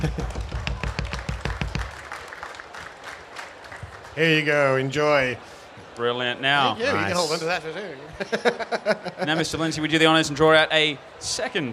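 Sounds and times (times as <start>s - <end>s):
laughter: 0.0s - 0.5s, 8.0s - 9.8s
speech: 0.0s - 0.5s, 4.2s - 11.7s
audience clapping for a winner: 0.0s - 4.6s.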